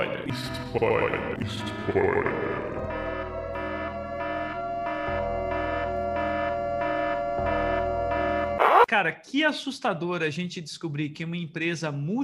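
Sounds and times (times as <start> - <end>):
speech: 0.3 - 2.8, 8.9 - 12.2
alarm siren effect: 0.4 - 8.9.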